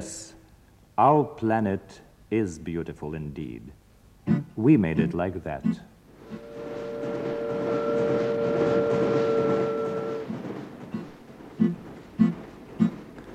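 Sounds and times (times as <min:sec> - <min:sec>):
speech: 0:00.0 - 0:00.3, 0:01.0 - 0:06.5
train hooting: 0:06.2 - 0:13.3.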